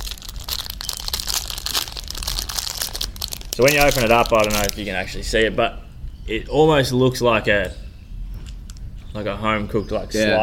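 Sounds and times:
stiff plastic protein bar wrapper crinkling as it is torn open: 0.0s - 5.0s
speech: 3.6s - 7.8s, 9.2s - 10.4s.

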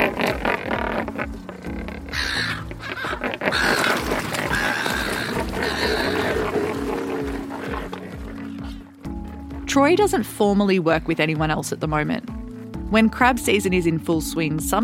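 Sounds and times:
flock of pelicans grunting and squawking: 0.0s - 9.0s
speech: 9.8s - 12.3s, 12.9s - 14.8s.

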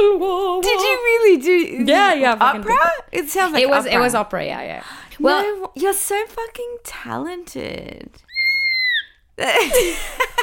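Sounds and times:
speech: 1.0s - 8.3s, 9.4s - 10.4s
high-pitched scream of excitement: 8.3s - 9.2s.

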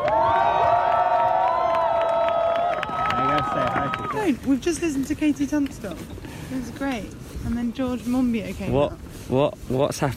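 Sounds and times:
crowd cheering: 0.0s - 4.4s
speech: 4.2s - 10.1s.

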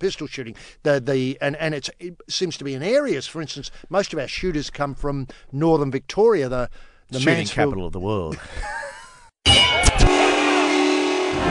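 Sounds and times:
speech: 0.0s - 9.8s
laughter: 8.3s - 9.3s
foghorn sound effect: 9.9s - 11.4s.

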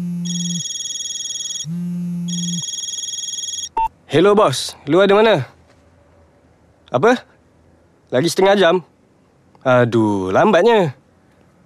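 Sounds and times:
electronic telephone ringtone with an incoming call: 0.0s - 3.8s
speech: 4.1s - 5.6s, 6.9s - 7.3s, 8.1s - 8.9s, 9.6s - 11.0s.

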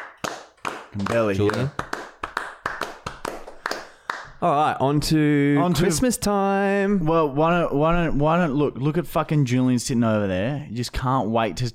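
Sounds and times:
hands clapping: 0.0s - 4.5s
speech: 0.9s - 1.9s, 4.4s - 11.7s.

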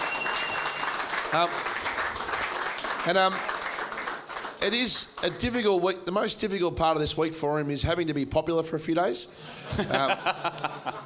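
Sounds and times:
audience applause: 0.0s - 5.4s
speech: 1.3s - 1.7s, 3.0s - 3.5s, 4.6s - 10.7s
laughter: 9.4s - 11.0s.

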